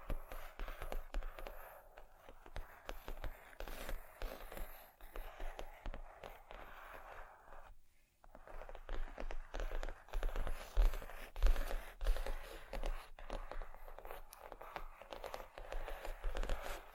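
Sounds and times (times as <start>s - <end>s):
scratching, tapping and rustling on vinyl and wood: 0.0s - 16.9s.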